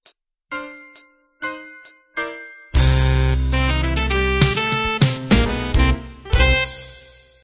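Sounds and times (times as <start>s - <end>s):
cool jazz ending: 2.8s - 7.2s.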